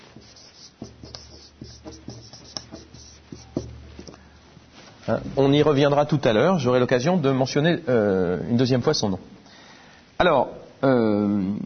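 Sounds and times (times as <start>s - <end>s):
writing a name on a board during a lecture: 0.0s - 4.2s
speech: 5.1s - 9.3s, 10.2s - 11.6s.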